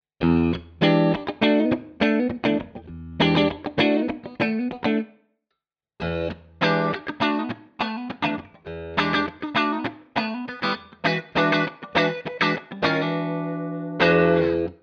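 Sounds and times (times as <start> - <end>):
Epiphone Les Paul electric guitar with both pickups split out of phase: 0.2 - 5.1, 6.0 - 14.8.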